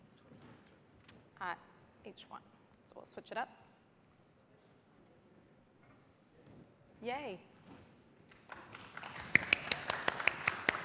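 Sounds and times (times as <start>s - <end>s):
speech: 1.4s - 3.6s, 7.0s - 7.5s
audience hand claps: 8.3s - 10.8s.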